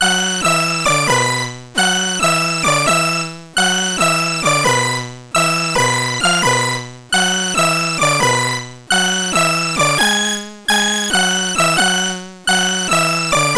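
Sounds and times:
C64 synthesizer: 0.0s - 13.5s.

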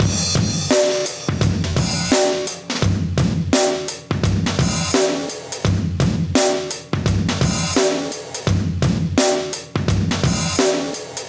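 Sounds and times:
live drum breaks: 0.0s - 11.2s.

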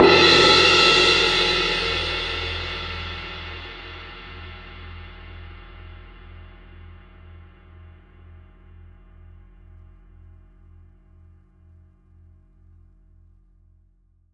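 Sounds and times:
high cymbal hit: 0.0s - 4.3s.

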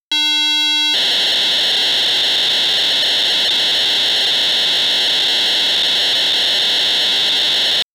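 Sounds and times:
PO-32 data transfer sounds: 0.2s - 7.9s.

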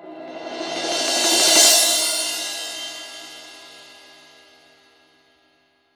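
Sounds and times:
cymbal swell: 0.0s - 4.5s.

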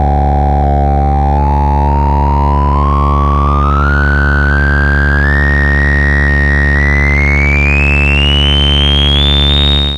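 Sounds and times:
EMS synth resonant modulated tone: 0.0s - 9.9s.

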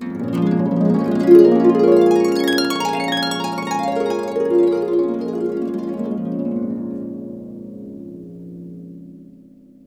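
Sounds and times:
harp glissando sweeps: 0.0s - 7.7s.

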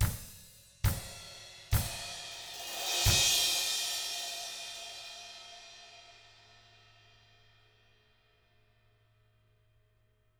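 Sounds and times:
drums: 0.0s - 7.5s.

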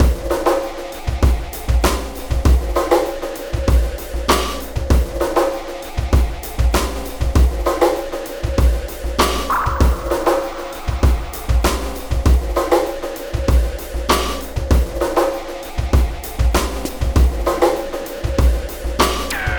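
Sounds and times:
processed drumkit beat: 0.0s - 19.5s.

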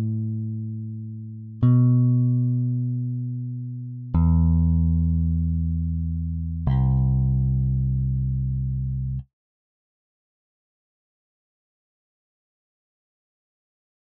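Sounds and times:
bass line in A minor: 0.0s - 9.3s.

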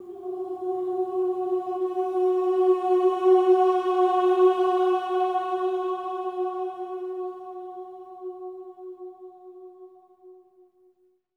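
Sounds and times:
choir swelling ohs on F sharp four: 0.0s - 8.4s.

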